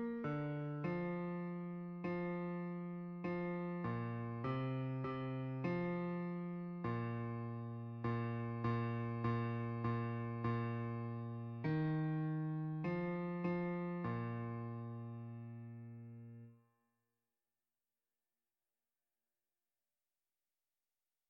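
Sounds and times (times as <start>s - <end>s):
bass: 0.0s - 16.4s.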